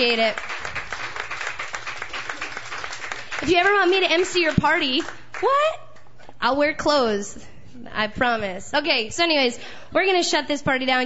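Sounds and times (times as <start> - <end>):
speech: 0.0 - 0.5, 3.4 - 5.8, 6.4 - 11.0
audience applause: 0.0 - 5.6.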